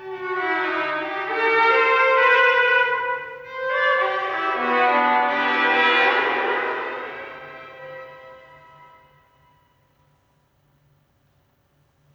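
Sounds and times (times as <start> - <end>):
violin and viola duet suite: 0.0 - 9.4.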